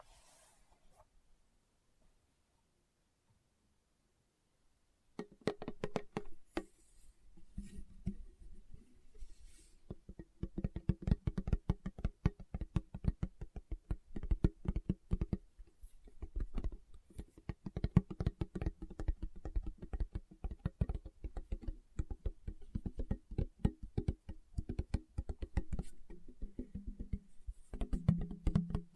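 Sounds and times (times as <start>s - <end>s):
fingertips tapping on a hard surface: 5.2s - 6.7s, 9.8s - 28.9s.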